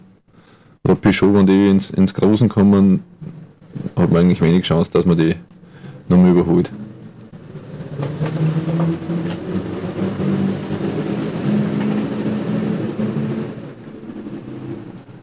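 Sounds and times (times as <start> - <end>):
speech: 0.8 - 3.1, 3.9 - 6.8
train passing by: 5.1 - 15.2.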